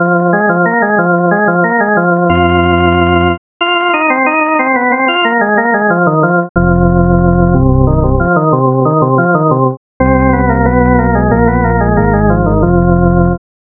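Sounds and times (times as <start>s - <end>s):
Hammond organ: 0.0s - 13.4s.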